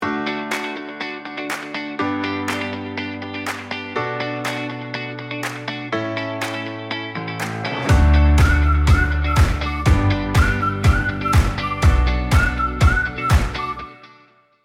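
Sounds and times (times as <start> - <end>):
music: 0.0 - 14.6.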